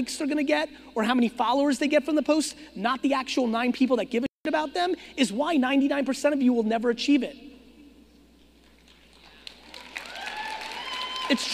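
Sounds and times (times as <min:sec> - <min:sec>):
speech: 0:00.0 - 0:07.5, 0:11.3 - 0:11.5
audience clapping in a room: 0:08.6 - 0:11.5.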